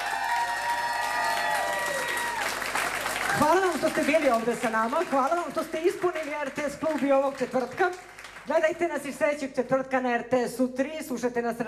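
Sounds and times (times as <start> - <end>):
concert audience applause at a club tribute show: 0.0 - 8.5
speech: 3.4 - 11.6.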